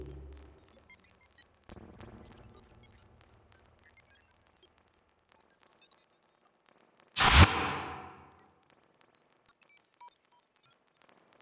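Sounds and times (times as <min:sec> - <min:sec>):
billiard ball radio jingle: 0:07.2 - 0:08.2.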